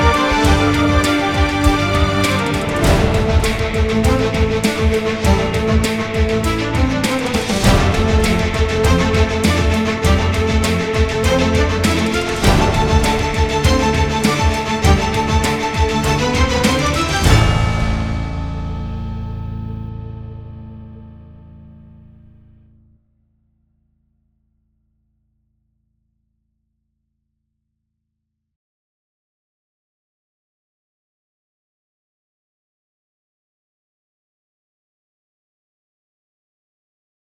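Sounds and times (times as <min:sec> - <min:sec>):
news music mix without melody: 0:00.0 - 0:21.6.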